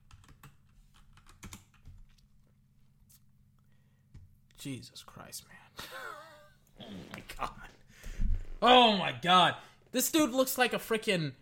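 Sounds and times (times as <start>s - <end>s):
typing on a computer keyboard: 0.0s - 2.2s
speech: 4.6s - 6.1s, 7.3s - 7.8s, 8.6s - 11.4s.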